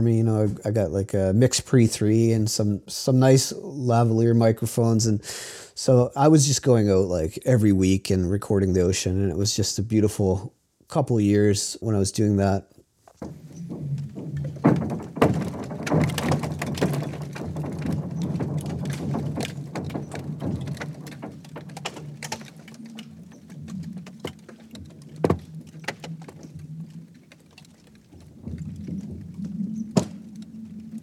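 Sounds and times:
speech: 0:00.0 - 0:13.9
Bear Lake ice sounds: 0:13.2 - 0:31.0.

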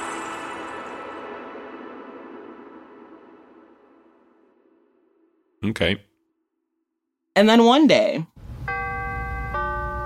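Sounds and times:
speech: 0:05.7 - 0:06.1, 0:07.4 - 0:08.3
two-note electronic train door-closing chime: 0:08.6 - 0:10.0.

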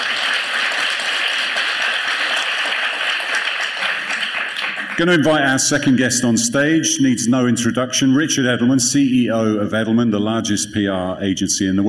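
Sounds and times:
audience applause: 0:00.0 - 0:05.4
speech: 0:05.0 - 0:11.8.

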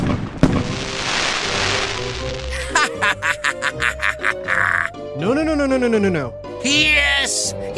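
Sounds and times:
firework boom: 0:00.0 - 0:02.4
rhythmic crackling bursts: 0:00.0 - 0:02.6
bright fizzling hiss: 0:00.7 - 0:02.8
laughter: 0:02.5 - 0:04.9
speech: 0:05.2 - 0:07.7.

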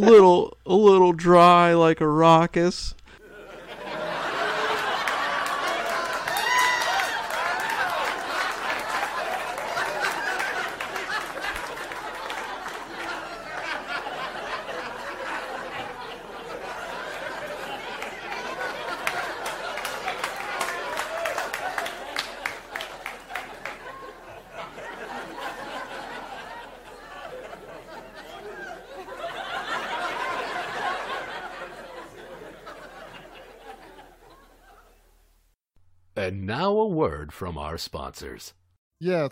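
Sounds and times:
speech: 0:00.0 - 0:03.0, 0:37.3 - 0:39.3
audience laughter sound effect with chatter: 0:03.1 - 0:35.0.

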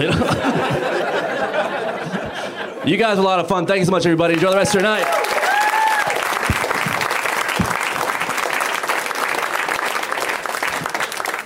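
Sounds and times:
speech: 0:00.0 - 0:00.6, 0:02.9 - 0:05.4
laughter: 0:00.0 - 0:03.1
crowd applauding: 0:04.3 - 0:11.4
crowd whooping: 0:04.5 - 0:09.4.

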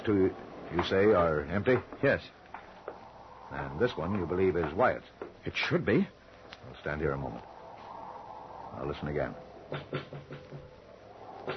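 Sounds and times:
speech: 0:00.0 - 0:02.4, 0:03.5 - 0:07.5, 0:08.8 - 0:10.8
knocking and tapping: 0:09.7 - 0:10.7.

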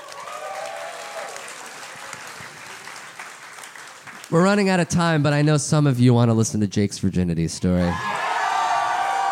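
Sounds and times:
audience whoops and cheers: 0:00.0 - 0:02.2, 0:07.8 - 0:09.3
live audience clapping: 0:00.0 - 0:05.4
speech: 0:04.3 - 0:08.1.

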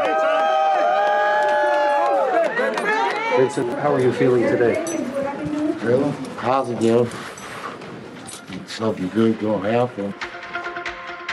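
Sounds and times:
supporters cheering and shouting: 0:00.0 - 0:06.4
speech: 0:03.4 - 0:05.1, 0:05.8 - 0:07.3, 0:08.7 - 0:10.3.

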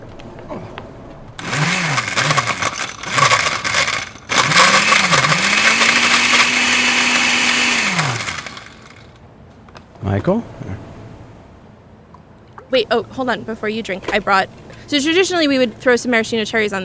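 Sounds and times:
blender blending a drink: 0:01.4 - 0:09.2
speech: 0:10.2 - 0:10.7, 0:12.8 - 0:16.8.

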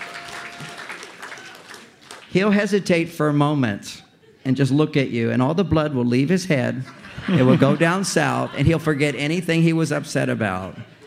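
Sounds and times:
audience applause: 0:00.0 - 0:02.3
speech: 0:02.3 - 0:10.9
laughter: 0:06.8 - 0:11.0.

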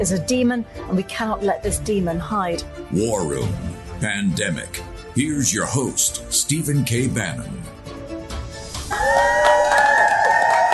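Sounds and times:
speech: 0:00.0 - 0:08.0, 0:09.0 - 0:09.6
rowdy crowd cheering: 0:08.8 - 0:10.7
high whoops and yells: 0:08.9 - 0:10.7.

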